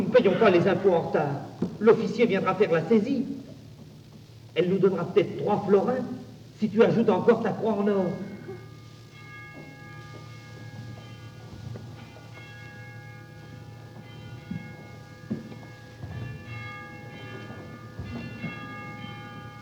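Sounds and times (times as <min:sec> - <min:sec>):
bells ringing: 0:00.0 - 0:03.2, 0:04.7 - 0:19.6
speech: 0:00.1 - 0:03.4, 0:04.6 - 0:08.3.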